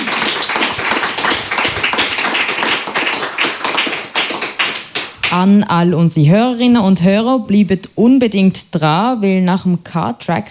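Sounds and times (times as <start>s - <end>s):
applause: 0.0s - 5.4s
speech: 5.3s - 10.4s.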